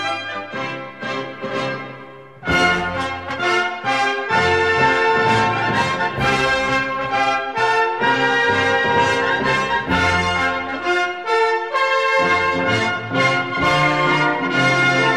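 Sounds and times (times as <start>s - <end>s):
military march in F major: 0.1s - 15.1s.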